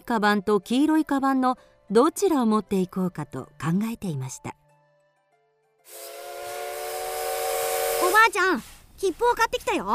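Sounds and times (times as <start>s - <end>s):
speech: 0.1s - 4.6s, 8.1s - 9.9s
steam train whistle: 5.9s - 8.4s
steam train hissing: 5.9s - 8.9s.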